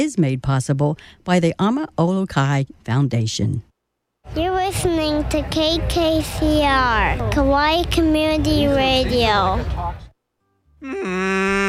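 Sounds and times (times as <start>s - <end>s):
speech: 0.0s - 10.0s, 10.8s - 11.6s
person imitating an albatross call: 10.8s - 11.6s.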